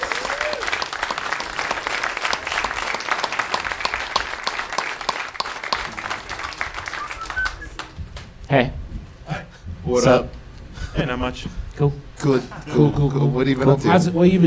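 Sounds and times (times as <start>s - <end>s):
audience applause: 0.0s - 8.2s
speech: 8.5s - 8.8s, 9.9s - 10.4s, 11.0s - 14.4s.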